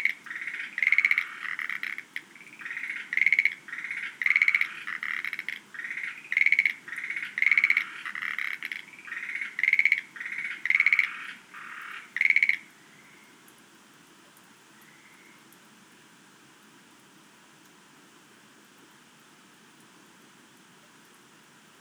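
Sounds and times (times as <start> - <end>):
Schlegel's green tree frogs rattling croaks: 0.0 - 13.3, 14.8 - 15.4.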